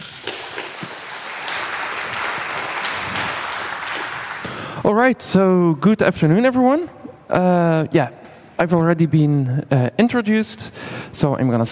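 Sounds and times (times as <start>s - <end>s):
audience applause: 0.0s - 4.8s
speech: 5.0s - 11.7s.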